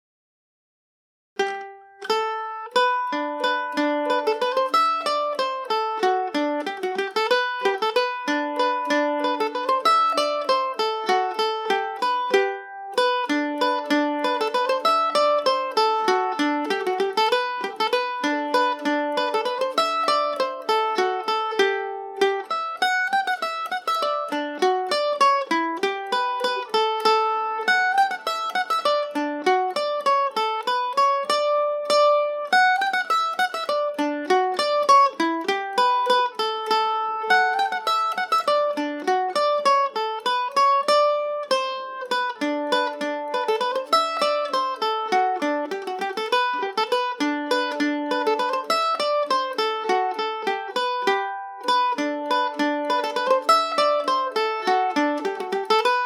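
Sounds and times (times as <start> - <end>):
Irish mandolin playing polka in G major and D major: 1.4 - 56.0.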